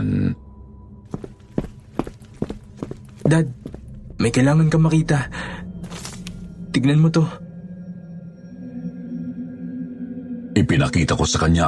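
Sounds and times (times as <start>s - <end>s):
hurried heavy footsteps going down a staircase: 1.1s - 4.1s
speech: 3.3s - 3.6s, 4.2s - 5.6s, 6.8s - 7.4s, 10.6s - 11.6s.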